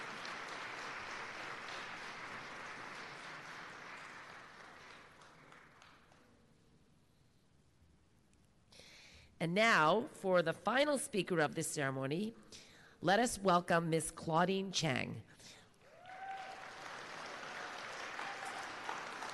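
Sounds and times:
audience applause: 0.0s - 6.2s, 15.8s - 19.3s
speech: 9.4s - 15.6s.

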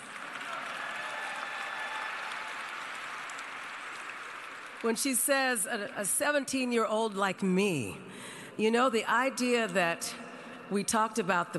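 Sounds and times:
crowd applauding: 0.0s - 5.9s
speech: 4.8s - 11.5s.

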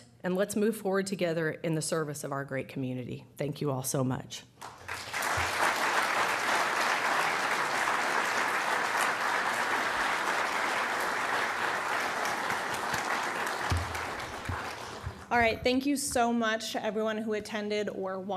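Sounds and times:
speech: 0.2s - 4.8s, 15.3s - 18.3s
audience applause: 4.6s - 15.3s.

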